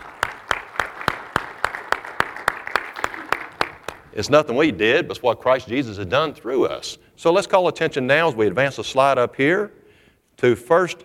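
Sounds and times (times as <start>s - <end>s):
audience applause: 0.0s - 4.2s
speech: 4.2s - 9.8s, 10.4s - 11.0s.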